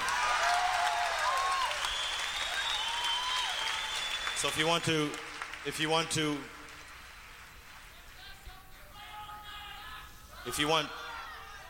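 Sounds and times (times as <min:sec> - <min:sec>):
audience yelling: 0:00.0 - 0:04.0, 0:09.0 - 0:11.6
audience applauding: 0:00.0 - 0:08.2
speech: 0:04.4 - 0:06.6, 0:10.4 - 0:11.0.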